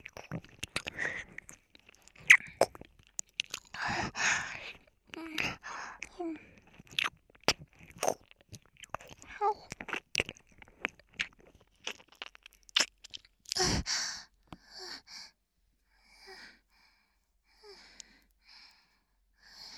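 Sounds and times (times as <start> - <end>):
slurping: 0.0 - 13.8.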